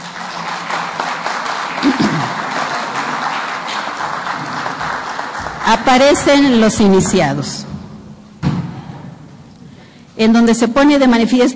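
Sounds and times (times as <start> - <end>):
audience applause: 0.0 - 6.7
speech: 5.7 - 7.6, 10.2 - 11.5.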